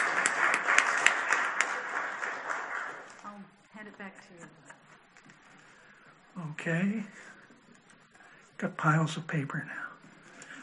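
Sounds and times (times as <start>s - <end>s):
audience applause: 0.0s - 3.3s
speech: 6.4s - 7.3s, 8.6s - 9.8s.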